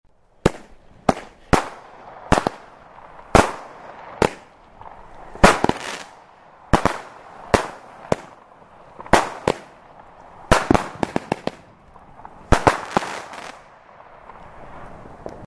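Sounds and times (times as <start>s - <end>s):
fireworks: 0.4s - 15.4s.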